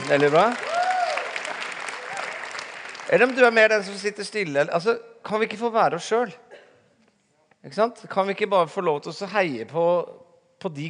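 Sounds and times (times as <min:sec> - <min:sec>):
audience clapping: 0:00.0 - 0:04.2
speech: 0:00.1 - 0:00.7, 0:03.1 - 0:06.4, 0:07.6 - 0:10.8
whoop or cheer: 0:00.6 - 0:02.5.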